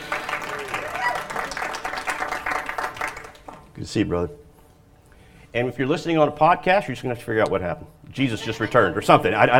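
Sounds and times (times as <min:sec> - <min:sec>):
audience clapping: 0:00.0 - 0:03.8
speech: 0:03.9 - 0:04.4, 0:05.5 - 0:09.5.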